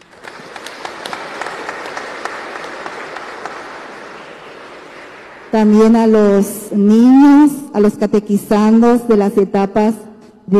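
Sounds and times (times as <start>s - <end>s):
audience applause: 0.0s - 5.6s
speech: 5.5s - 10.5s.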